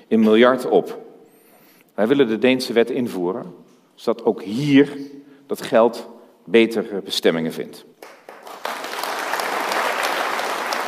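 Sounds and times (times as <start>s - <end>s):
speech: 0.1s - 1.0s, 2.0s - 7.9s
audience applause after a speech: 8.0s - 10.8s.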